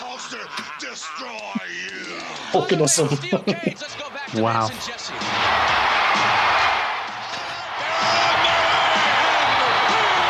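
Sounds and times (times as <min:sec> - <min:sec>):
laughter: 0:00.0 - 0:04.2
speech: 0:00.4 - 0:05.6
wrestling arena crowd cheering wildly: 0:04.8 - 0:10.2.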